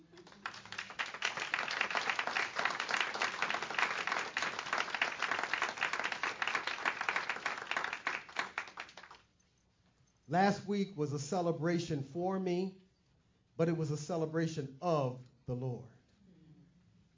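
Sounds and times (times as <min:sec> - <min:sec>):
crowd round of applause: 0:00.0 - 0:09.2
speech: 0:10.3 - 0:12.8, 0:13.6 - 0:15.9.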